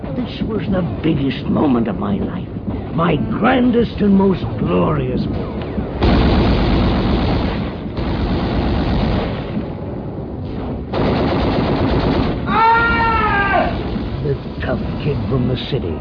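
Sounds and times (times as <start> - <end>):
speech: 0.2 - 5.6, 15.0 - 16.0
enemy heavy gunfire during beach landing: 5.3 - 9.9, 10.5 - 15.3.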